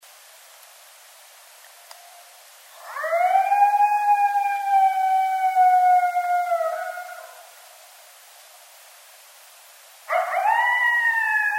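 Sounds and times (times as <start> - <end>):
coyote howling: 2.8 - 7.5, 10.1 - 11.5.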